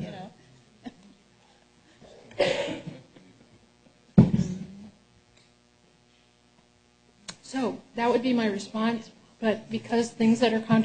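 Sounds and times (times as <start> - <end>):
person coughing from a tickle in the throat: 2.0 - 3.3
speech: 8.0 - 10.7.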